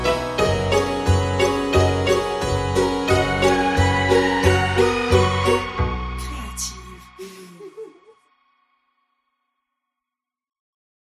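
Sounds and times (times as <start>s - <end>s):
harpsichord: 0.0s - 6.6s.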